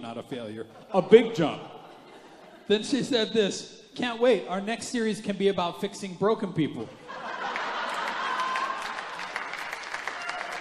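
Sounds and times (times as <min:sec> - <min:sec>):
speech: 0:00.0 - 0:01.8, 0:02.7 - 0:07.3
laughter: 0:00.6 - 0:02.8, 0:06.8 - 0:09.2
audience clapping: 0:07.4 - 0:10.5.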